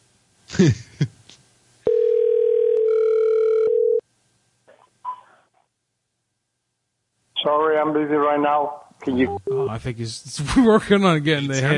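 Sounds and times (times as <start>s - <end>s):
speech: 0.6s - 1.1s, 8.0s - 11.7s
voicemail telephone beep: 1.9s - 4.0s.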